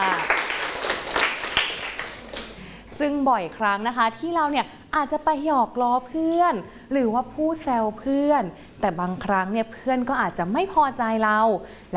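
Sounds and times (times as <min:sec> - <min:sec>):
hands clapping: 0:00.0 - 0:02.6
speech: 0:03.0 - 0:11.9.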